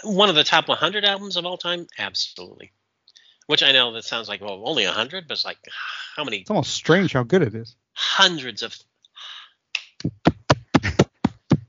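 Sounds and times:
speech: 0.0 - 2.8, 3.5 - 9.3, 10.0 - 10.3
hand clap: 9.8 - 11.6.

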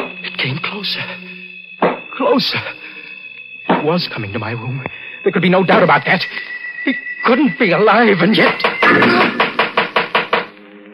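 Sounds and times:
speech: 0.4 - 1.4, 2.2 - 2.9, 3.8 - 9.4
knocking at a door: 8.6 - 10.5.

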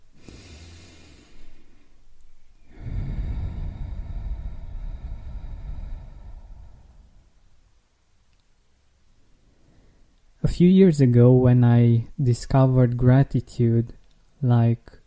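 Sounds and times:
deep breath in and out in a guided gratitude exercise: 0.0 - 2.0, 2.6 - 7.5, 9.4 - 10.1
speech: 10.6 - 15.0.

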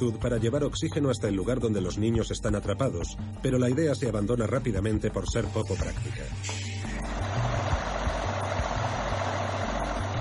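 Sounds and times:
speech: 0.0 - 6.6
water pump engine running to lower water in a cave: 6.8 - 10.1.

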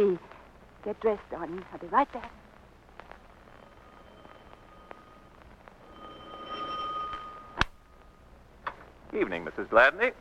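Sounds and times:
speech: 0.0 - 2.4, 9.1 - 10.2
faint hiss: 0.0 - 10.2
doorbell ringing with a high electronic tone: 3.9 - 7.6.

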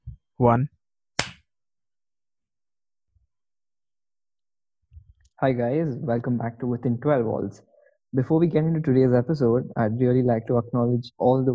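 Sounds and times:
speech: 0.4 - 0.8, 5.4 - 11.5
hand clap for sync cue: 1.2 - 1.4.

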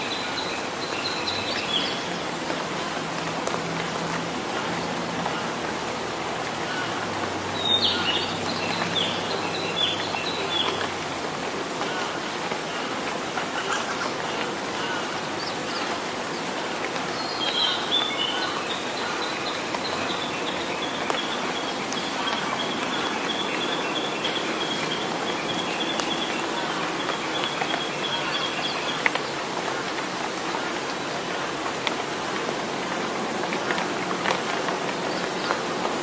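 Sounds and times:
birds singing: 0.0 - 3.6, 6.7 - 31.6
rain pattering through a forest: 0.0 - 36.0.

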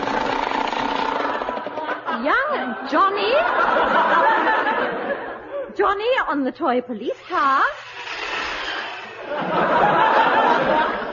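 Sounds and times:
toy machine gun rattling: 0.0 - 1.8
laughter: 1.2 - 5.8, 9.2 - 11.1
speech: 2.2 - 5.0, 5.8 - 7.9.

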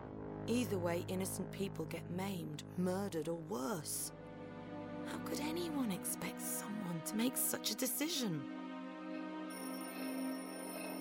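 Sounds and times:
speech: 0.5 - 4.2, 5.0 - 8.6
magic orb ringing like a phone: 9.5 - 11.0.

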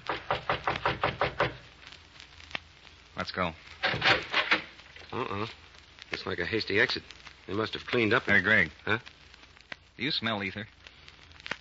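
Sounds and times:
knocks on a door: 0.1 - 1.6
speech: 3.2 - 4.4, 5.1 - 9.1, 10.0 - 10.8.

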